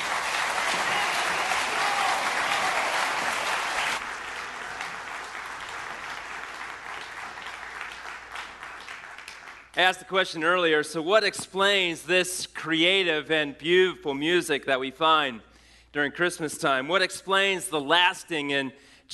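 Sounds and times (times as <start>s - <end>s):
audience applause: 0.0s - 9.8s
speech: 9.8s - 19.1s.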